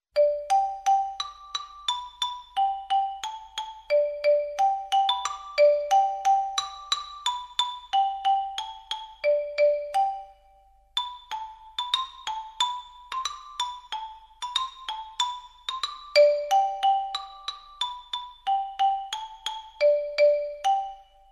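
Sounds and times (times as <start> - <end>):
nursery rhyme played on a xylophone: 0.1 - 21.2.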